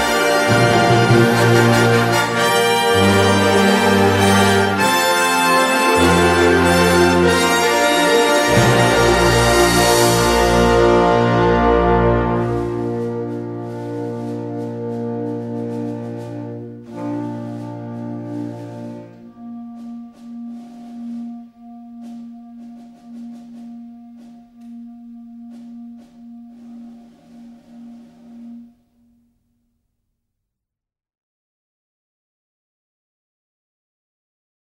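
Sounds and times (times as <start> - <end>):
fanfare: 0.0 - 21.7.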